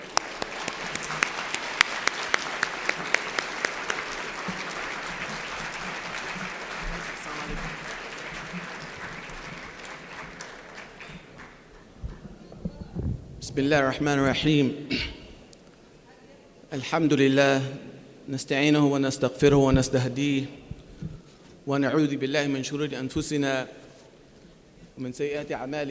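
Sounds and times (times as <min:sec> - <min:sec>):
audience applause: 0:00.0 - 0:12.2
speech: 0:13.6 - 0:15.1, 0:16.8 - 0:20.6, 0:21.7 - 0:23.8, 0:25.0 - 0:25.8.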